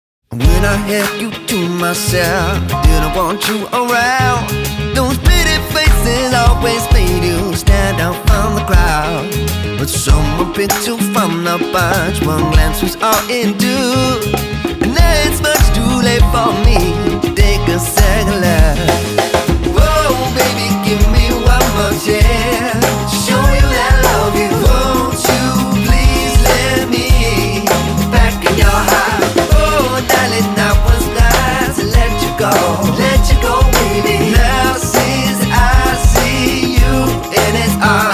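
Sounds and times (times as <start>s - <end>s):
rock pop band: 0.3s - 38.1s.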